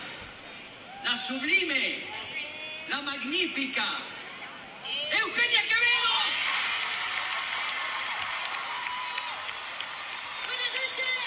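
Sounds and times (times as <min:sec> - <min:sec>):
speech: 0:01.2 - 0:04.2, 0:05.1 - 0:06.0
crowd ovation and applause: 0:06.0 - 0:11.2.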